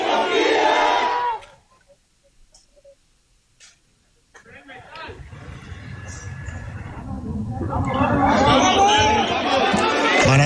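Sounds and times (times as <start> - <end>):
people shouting searching for survivors: 0.0 - 1.5, 8.1 - 10.3.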